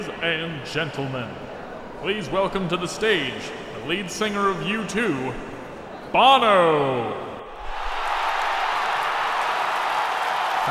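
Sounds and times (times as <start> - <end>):
speech: 0.0 - 5.5, 6.1 - 7.3
audience applause: 7.6 - 10.7.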